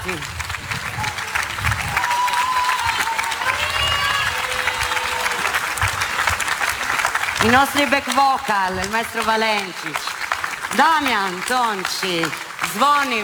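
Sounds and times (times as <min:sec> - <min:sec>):
whistles and cheers: 0:00.0 - 0:07.5
crowd applauding: 0:00.0 - 0:13.2
speech: 0:00.1 - 0:00.4, 0:07.4 - 0:10.1, 0:10.7 - 0:13.2.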